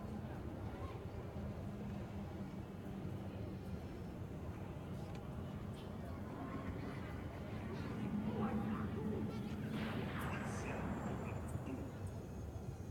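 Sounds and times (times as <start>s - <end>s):
city ambience: 0.0s - 12.8s.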